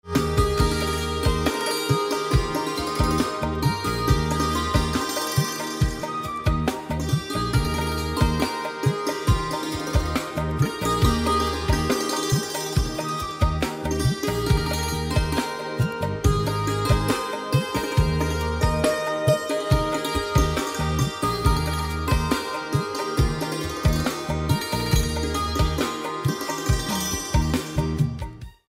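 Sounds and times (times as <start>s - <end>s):
santoor playing: 0.0s - 28.6s.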